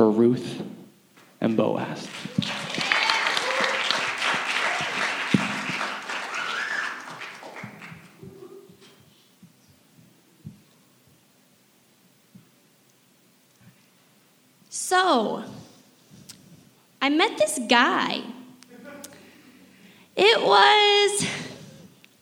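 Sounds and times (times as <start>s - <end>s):
speech: 0.2s - 0.7s, 1.4s - 2.6s, 17.6s - 18.4s, 20.2s - 21.4s
audience applause: 1.9s - 8.5s.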